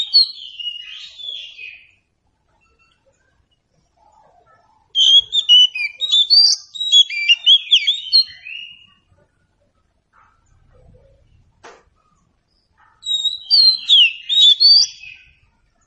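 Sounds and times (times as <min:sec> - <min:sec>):
Oriental Magpie-Robin song: 0:00.0 - 0:09.3, 0:12.0 - 0:15.8.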